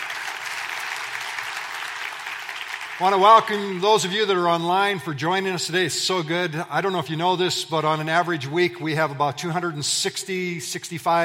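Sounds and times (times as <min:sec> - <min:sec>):
church congregation applauding worship team and band: 0:00.0 - 0:04.5
speech: 0:03.0 - 0:11.2.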